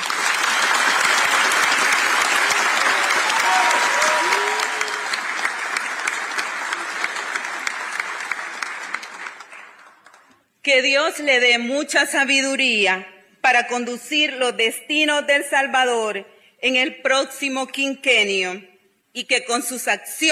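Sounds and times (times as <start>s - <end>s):
audience applause: 0.0s - 10.4s
speech: 10.8s - 20.3s.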